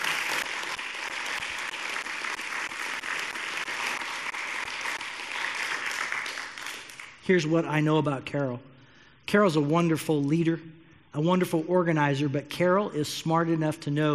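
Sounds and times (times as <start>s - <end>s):
round of applause: 0.0s - 7.2s
speech: 7.3s - 8.7s, 9.3s - 14.1s.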